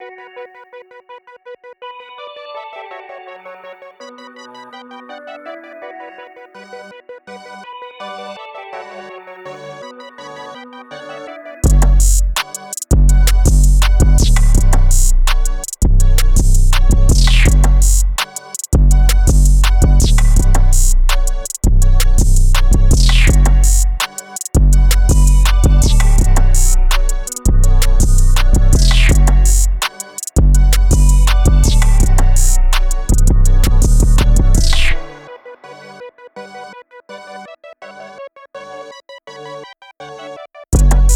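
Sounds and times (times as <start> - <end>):
rap bass beat: 11.6 - 35.2, 40.8 - 41.1.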